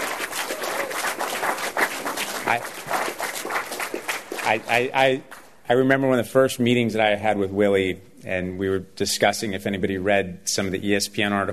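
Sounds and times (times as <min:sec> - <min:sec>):
audience applause: 0:00.0 - 0:05.5
speech: 0:02.5 - 0:03.1, 0:04.5 - 0:11.5.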